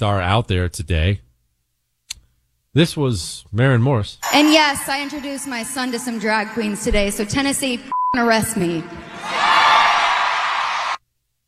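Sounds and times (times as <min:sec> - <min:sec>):
speech: 0:00.0 - 0:01.3, 0:02.8 - 0:09.6
large crowd cheering: 0:04.2 - 0:07.9, 0:08.6 - 0:11.0.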